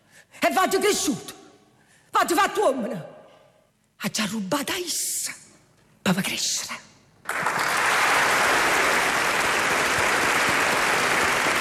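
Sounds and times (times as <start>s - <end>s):
speech: 0.5s - 1.3s, 2.2s - 3.1s, 4.0s - 5.4s, 6.1s - 7.6s
applause in studio: 7.2s - 11.5s.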